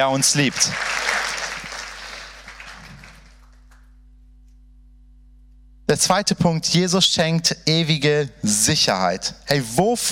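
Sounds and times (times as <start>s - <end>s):
speech: 0.0s - 1.0s, 5.9s - 10.0s
audience applause: 0.0s - 3.8s.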